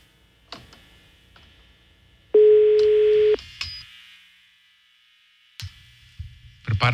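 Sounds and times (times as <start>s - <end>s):
telephone ringback tone on an unanswered call: 2.4s - 3.4s.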